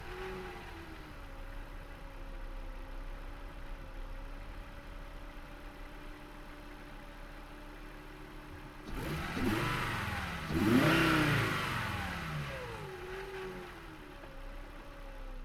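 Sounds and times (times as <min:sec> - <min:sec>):
Volvo 850 SE 2.5 engine on a fast drive with throttle blips: 0:08.8 - 0:14.0.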